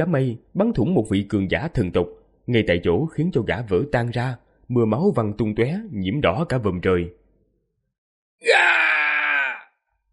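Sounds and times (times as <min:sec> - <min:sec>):
speech: 0:00.0 - 0:07.2
agonized scream of a dying warrior: 0:08.4 - 0:09.9.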